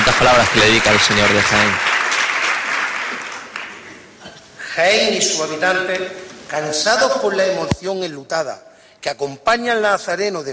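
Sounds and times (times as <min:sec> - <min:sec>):
crowd applauding: 0:00.0 - 0:04.1
speech: 0:00.1 - 0:01.9, 0:04.8 - 0:10.5.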